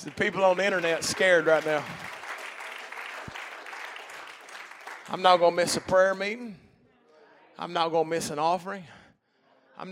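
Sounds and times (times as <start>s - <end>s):
speech: 0.0s - 2.2s, 5.1s - 6.6s, 7.6s - 9.0s, 9.8s - 9.9s
audience clapping: 0.0s - 6.5s.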